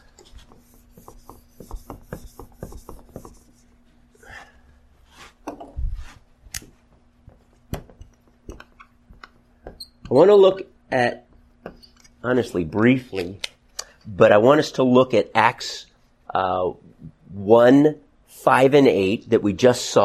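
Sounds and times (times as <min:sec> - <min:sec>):
board being erased: 0:00.0 - 0:04.0
speech: 0:10.1 - 0:11.2, 0:12.2 - 0:13.4, 0:14.1 - 0:20.0.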